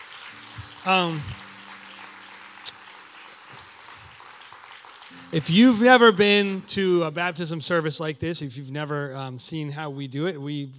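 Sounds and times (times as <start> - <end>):
audience clapping: 0.0 - 7.6
speech: 0.8 - 1.4, 5.3 - 10.7.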